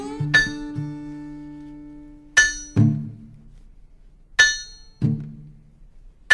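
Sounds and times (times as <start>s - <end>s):
steel-driving hammer striking: 2.4s - 3.1s, 4.4s - 5.1s.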